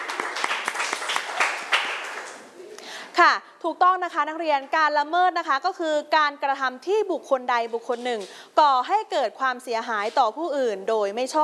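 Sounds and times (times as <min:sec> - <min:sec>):
students clapping for themselves: 0:00.0 - 0:02.4
speech: 0:03.2 - 0:11.4.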